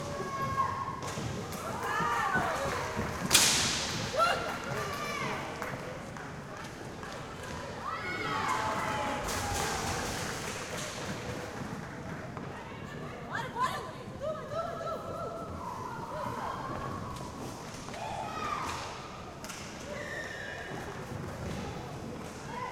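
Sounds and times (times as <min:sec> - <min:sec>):
women's league roller hockey match ambience: 0:00.0 - 0:22.7.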